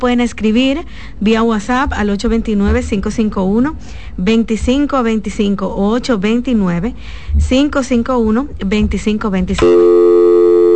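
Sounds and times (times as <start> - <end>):
speech: 0.0 - 10.0
steady electronic line tone of a dropped call: 9.6 - 10.7.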